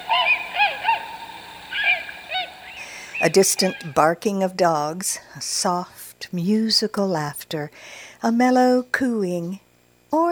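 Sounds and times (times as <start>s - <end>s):
tundra swan high-pitched call: 0.0s - 4.1s
speech: 3.2s - 10.3s.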